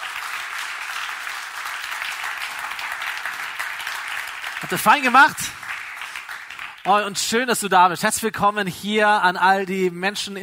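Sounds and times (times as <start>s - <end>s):
audience applause: 0.0s - 7.1s
speech: 4.6s - 5.6s, 6.8s - 10.4s.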